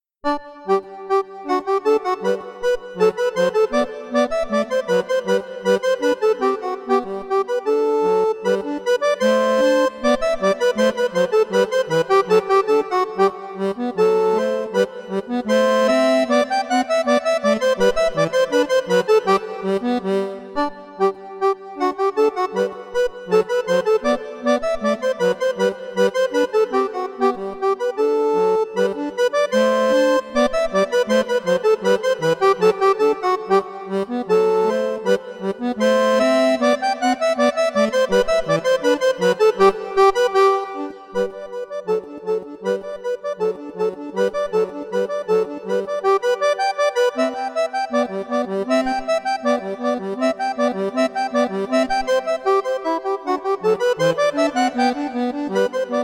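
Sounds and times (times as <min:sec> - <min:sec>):
baroque dance piece: 0:00.0 - 0:56.0.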